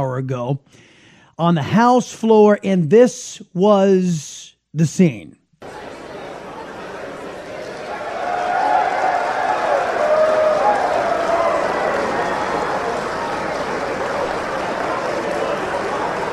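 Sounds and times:
speech: 0.0 - 5.8
Republicans cheering on the House floor: 5.6 - 16.3.

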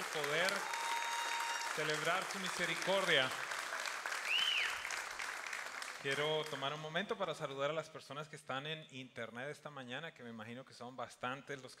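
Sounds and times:
audience applause: 0.0 - 6.8
speech: 0.2 - 0.8, 1.8 - 3.5, 6.0 - 11.7
high whistle-like tone: 4.3 - 4.9.

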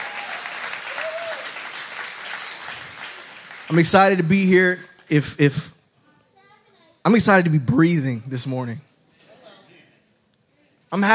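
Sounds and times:
audience applause: 0.0 - 4.3
speech: 3.7 - 5.7, 7.1 - 8.9, 10.9 - 11.1.

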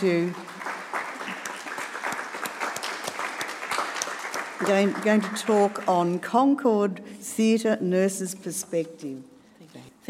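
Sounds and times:
speech: 0.0 - 0.4, 4.6 - 9.3
audience applause welcoming a speaker: 0.0 - 5.9.

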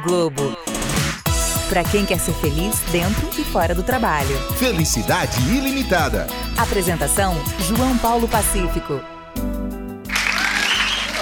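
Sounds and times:
speech: 0.0 - 1.1, 1.7 - 9.2
music: 0.0 - 11.2
crowd clapping: 10.1 - 11.2.

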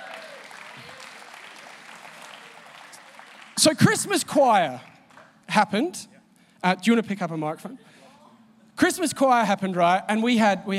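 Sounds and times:
round of applause: 0.0 - 4.2, 4.8 - 5.4
speech: 3.6 - 4.9, 5.6 - 8.0, 8.8 - 10.7.

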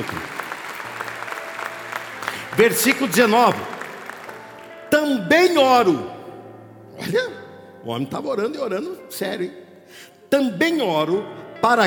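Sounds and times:
applause sound effect: 0.0 - 4.9
speech: 2.6 - 3.8, 5.1 - 6.1, 7.0 - 11.8.

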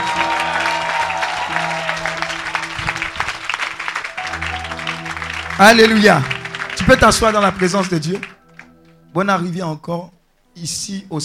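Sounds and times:
congregation applauding and cheering: 0.0 - 9.0
sustained keyboard chords: 0.0 - 11.2
speech: 5.6 - 8.3, 9.2 - 11.2.

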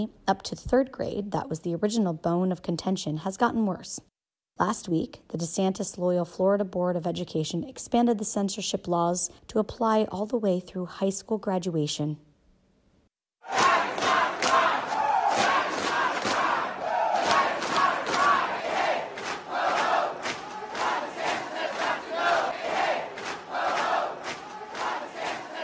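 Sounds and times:
speech: 0.0 - 12.3
drag queens and supporters chanting at the Florida Statehouse in Tallahassee: 13.4 - 25.6.

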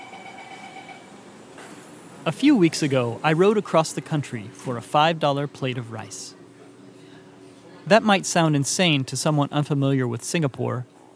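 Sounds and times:
train: 0.0 - 1.1
speech: 2.2 - 6.4, 7.9 - 11.0.

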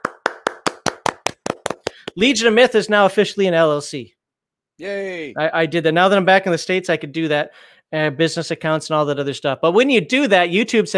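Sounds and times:
sharp hand claps: 0.0 - 2.3
speech: 2.2 - 4.2, 4.8 - 10.9.

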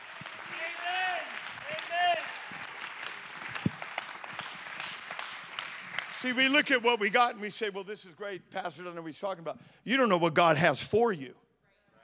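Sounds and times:
audience clapping hands in praise: 0.0 - 7.4
speech: 6.2 - 11.4.

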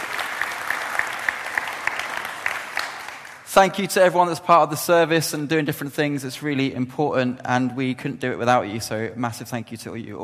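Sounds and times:
crowd clapping: 0.0 - 3.8
speech: 3.6 - 10.2.

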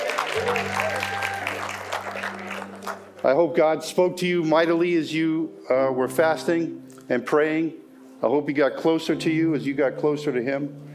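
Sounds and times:
church congregation hooting, cheering and clapping: 0.0 - 2.9
speech: 3.2 - 10.9.

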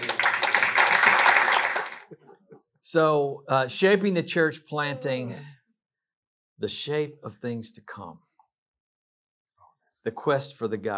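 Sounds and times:
audience round of applause: 0.0 - 2.1
speech: 2.9 - 5.6, 6.6 - 8.2, 10.0 - 10.9.

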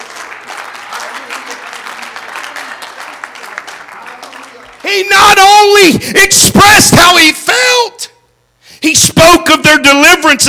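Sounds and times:
audience clapping hands: 0.0 - 5.4
speech: 4.9 - 8.1, 8.8 - 10.4.

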